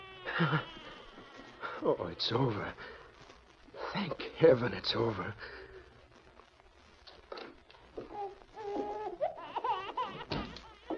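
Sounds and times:
newborn baby boy's muffled wail after birth: 0.0 - 2.2, 8.0 - 10.9
speech: 0.4 - 0.8, 1.8 - 3.0, 3.9 - 5.6.

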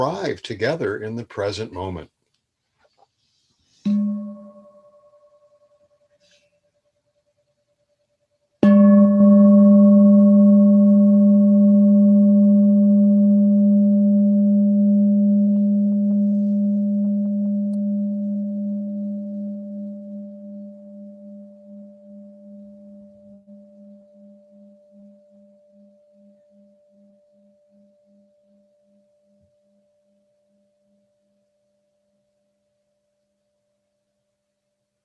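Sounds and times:
speech: 0.0 - 2.2
meditation bell ringing: 3.9 - 6.2, 8.6 - 32.6.

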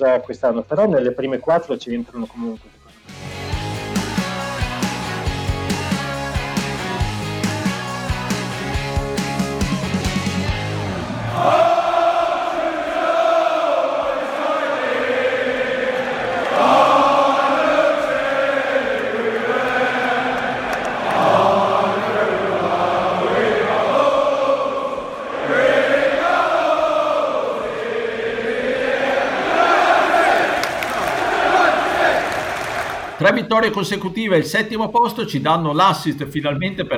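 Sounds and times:
speech: 0.0 - 2.8, 33.5 - 36.9
football club anthem sung by crowd: 3.6 - 33.2.

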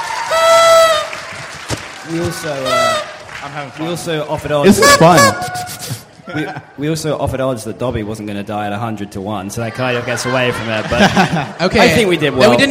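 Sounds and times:
audience tooting birthday party horns: 0.3 - 1.4, 2.2 - 3.2, 4.7 - 5.8
speech: 2.1 - 5.6, 6.3 - 12.6
laughter: 10.0 - 12.6.

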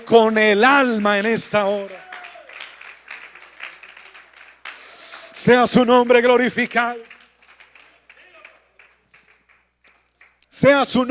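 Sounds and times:
speech: 0.1 - 2.0, 5.4 - 7.1, 10.6 - 11.0
audience applause: 0.7 - 10.4.

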